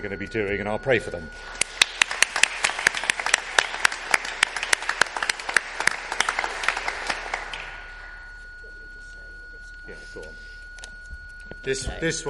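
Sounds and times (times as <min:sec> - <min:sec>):
speech: 0:00.0 - 0:01.6, 0:11.6 - 0:12.2
audience applause: 0:01.3 - 0:08.4.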